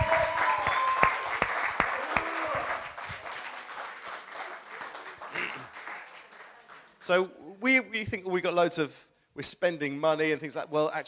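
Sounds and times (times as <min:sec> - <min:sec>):
audience applause: 0:00.0 - 0:07.0
speech: 0:07.1 - 0:11.0.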